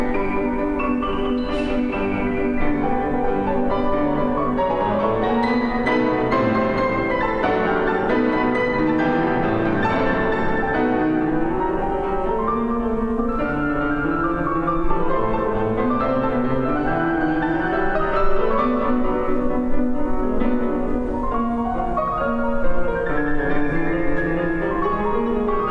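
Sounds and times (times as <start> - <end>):
piano theme: 0.0 - 25.6.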